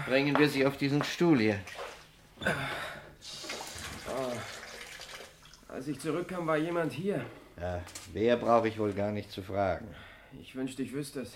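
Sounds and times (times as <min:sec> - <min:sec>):
speech: 0:00.1 - 0:03.4, 0:05.7 - 0:11.3
water running from a tap: 0:03.2 - 0:06.5.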